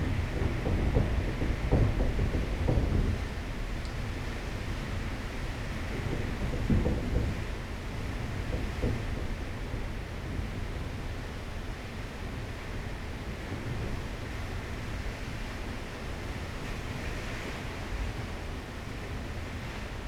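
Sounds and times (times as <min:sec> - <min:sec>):
storm outside a door in Curacao: 0:00.0 - 0:20.0.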